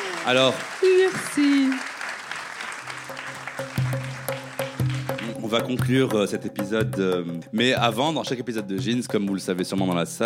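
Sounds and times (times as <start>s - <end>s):
audience applause: 0.0s - 5.8s
speech: 0.2s - 1.9s, 5.5s - 10.2s.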